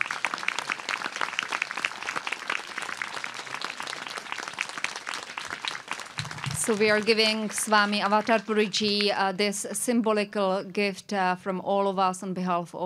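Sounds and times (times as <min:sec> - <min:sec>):
audience applause at a spiritual gathering: 0:00.0 - 0:09.3
speech: 0:06.6 - 0:12.8.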